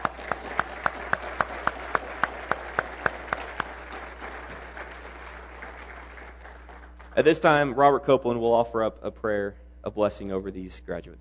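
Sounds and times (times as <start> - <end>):
audience applause: 0.0 - 7.2
speech: 7.2 - 11.1.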